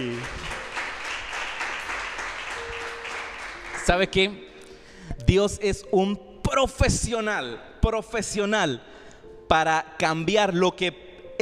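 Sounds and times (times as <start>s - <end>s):
audience applauding: 0.0s - 4.2s
speech: 3.9s - 4.5s, 5.1s - 8.9s, 9.5s - 11.0s.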